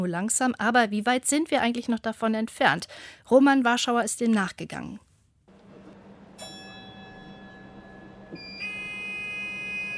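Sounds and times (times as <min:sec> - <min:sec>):
speech: 0:00.0 - 0:05.1
driverless shuttle Cube doors closing: 0:05.5 - 0:09.9
driverless shuttle Cube warning signal on starting: 0:06.3 - 0:09.9.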